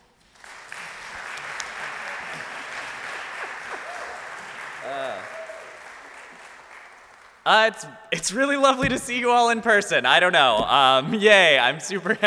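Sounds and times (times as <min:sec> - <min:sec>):
congregation clapping at a church service: 0:00.0 - 0:07.4
speech: 0:07.4 - 0:12.2.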